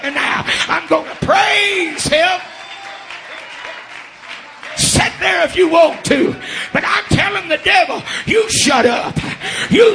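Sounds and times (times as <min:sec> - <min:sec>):
audience clapping hands: 0:00.9 - 0:06.5
speech: 0:05.4 - 0:09.9.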